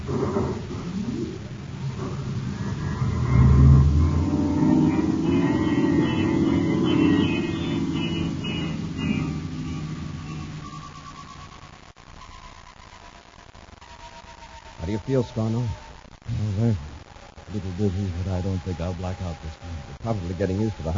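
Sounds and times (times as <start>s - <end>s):
spaceship engine engaging star drive: 0.0s - 11.5s
thin higher whine: 0.0s - 20.9s
speech: 15.2s - 16.8s, 17.5s - 20.9s.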